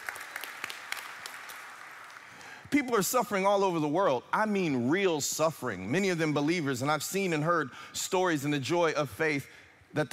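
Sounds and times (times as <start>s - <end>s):
audience clapping: 0.0s - 2.6s
speech: 2.7s - 10.1s.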